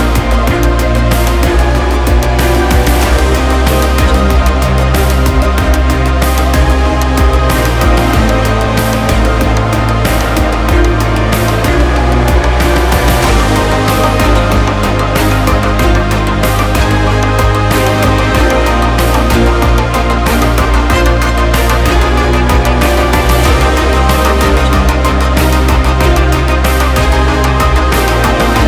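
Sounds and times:
strained electronic epic music: 0:00.0 - 0:28.6.

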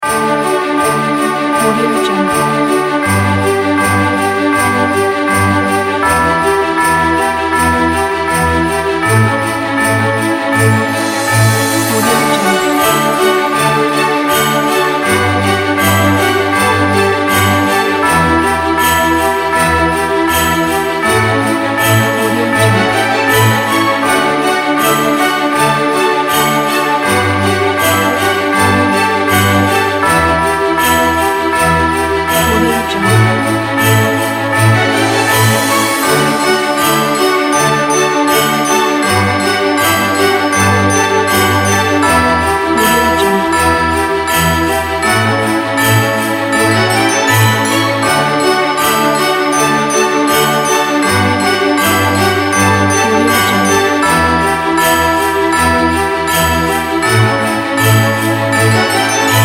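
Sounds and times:
Christmas music: 0:00.0 - 0:59.4.

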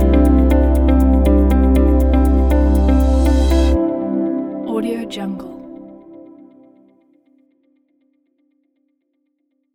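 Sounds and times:
inspiring corporate music: 0:00.0 - 0:06.6.

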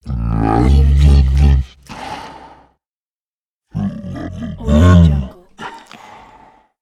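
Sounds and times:
big creature grumbling: 0:00.0 - 0:02.6, 0:03.7 - 0:06.2.

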